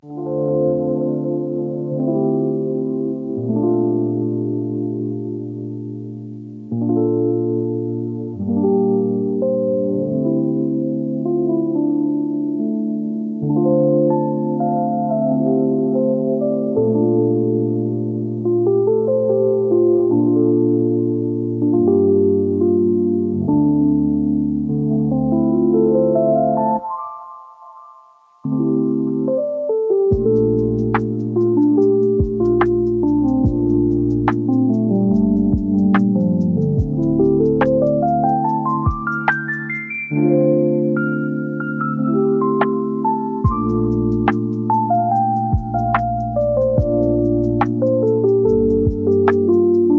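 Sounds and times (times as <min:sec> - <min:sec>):
silent piano: 0:00.0 - 0:49.9.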